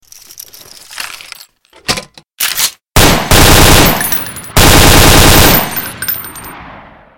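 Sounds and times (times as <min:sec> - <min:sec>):
M16 rifle gunshots ringtone: 0:03.0 - 0:05.9.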